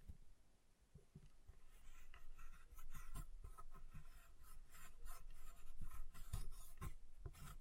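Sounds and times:
chalk being carved and cut: 1.6 - 7.5.

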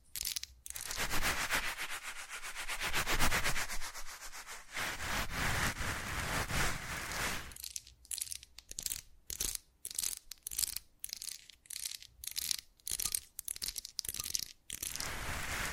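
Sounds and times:
rubbing: 0.8 - 7.6.

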